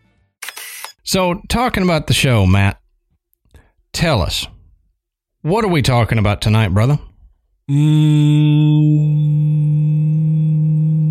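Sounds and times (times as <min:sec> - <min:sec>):
speech: 0:01.1 - 0:02.8, 0:03.9 - 0:04.6, 0:05.4 - 0:07.1, 0:07.7 - 0:10.4
voice imitating a low steady droning hum: 0:07.7 - 0:11.0.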